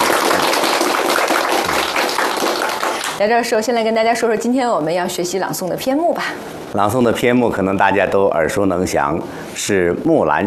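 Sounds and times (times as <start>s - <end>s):
audience clapping: 0.0s - 3.2s
speech: 3.2s - 10.4s.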